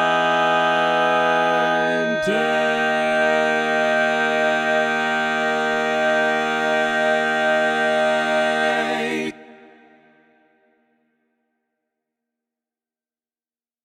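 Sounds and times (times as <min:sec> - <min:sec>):
baritone barbershop tags: 0:00.0 - 0:09.7.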